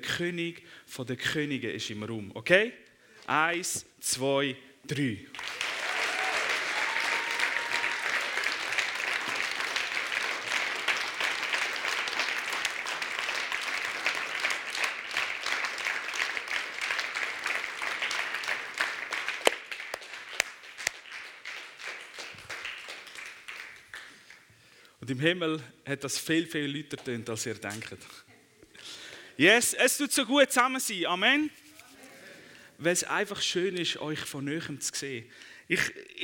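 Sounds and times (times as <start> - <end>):
speech: 0.0 - 5.6, 25.1 - 28.2, 29.4 - 31.6, 32.8 - 36.2
crowd clapping: 5.3 - 24.5.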